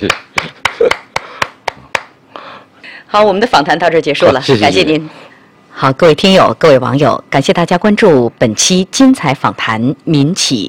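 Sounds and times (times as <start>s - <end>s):
speech: 0.0s - 0.2s, 3.1s - 10.6s
people's hand claps of applause: 0.0s - 2.2s.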